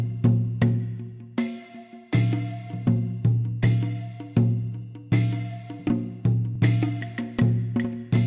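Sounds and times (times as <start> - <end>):
Asian instruments ambience: 0.0 - 8.2.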